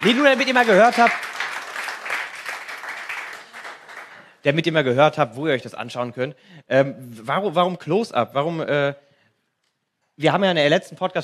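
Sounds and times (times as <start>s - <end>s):
speech: 0.0s - 1.3s, 4.4s - 9.0s, 10.2s - 11.2s
audience applause: 0.0s - 4.4s.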